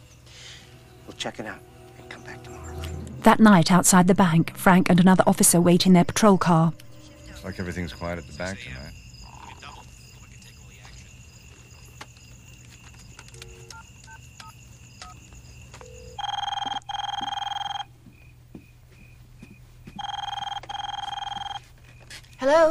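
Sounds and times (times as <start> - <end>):
speech: 1.1 - 6.8, 7.4 - 9.0, 22.5 - 22.6
telephone ringing in electronic trills: 13.2 - 17.9, 20.0 - 21.7
short telephone dial beeps: 16.0 - 17.9, 20.0 - 21.6.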